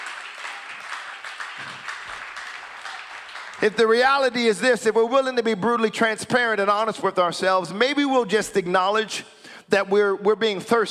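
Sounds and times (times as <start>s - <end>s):
audience clapping: 0.0s - 4.6s
speech: 3.6s - 10.8s.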